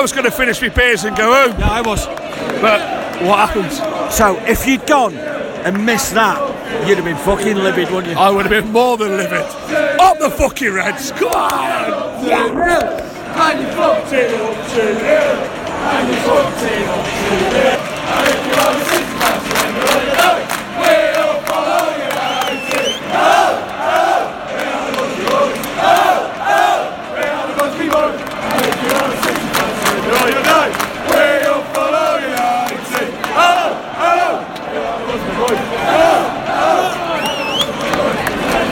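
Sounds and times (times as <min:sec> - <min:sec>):
speech: 0:00.0 - 0:20.0
football fans cheering and chanting: 0:00.0 - 0:38.7
rhythmic clapping: 0:01.2 - 0:05.0, 0:12.7 - 0:33.8, 0:37.1 - 0:38.7.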